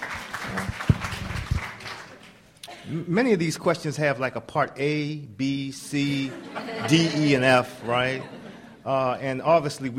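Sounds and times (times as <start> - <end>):
audience applause: 0.0 - 2.4
speech: 2.9 - 9.9
laughter: 6.1 - 9.2.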